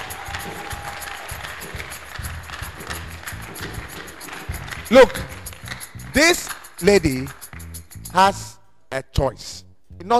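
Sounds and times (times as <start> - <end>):
audience applause: 0.0 - 5.8
speech: 4.9 - 5.3, 6.1 - 7.4, 8.1 - 10.1.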